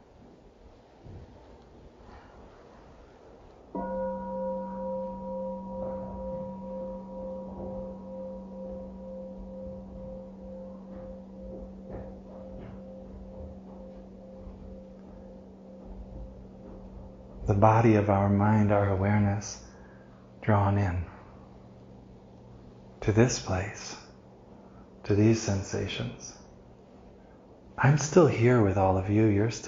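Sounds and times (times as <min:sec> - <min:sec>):
bell ringing: 0:03.8 - 0:20.0
speech: 0:17.5 - 0:19.6, 0:20.5 - 0:21.1, 0:23.1 - 0:24.0, 0:25.1 - 0:26.4, 0:27.8 - 0:29.6.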